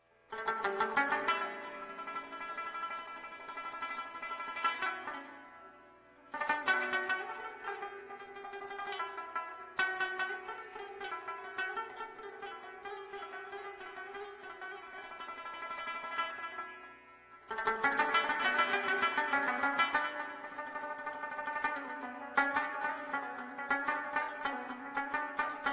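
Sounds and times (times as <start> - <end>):
rabab fusion music: 0.3 - 25.7.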